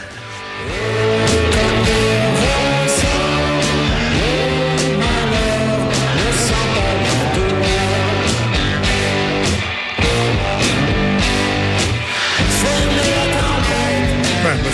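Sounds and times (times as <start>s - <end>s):
distorted rock guitar with amp reverb: 0.0s - 14.7s.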